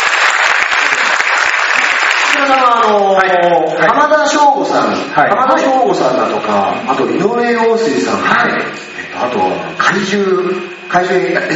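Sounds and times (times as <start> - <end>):
audience applause: 0.0 - 3.4
speech: 2.4 - 11.5.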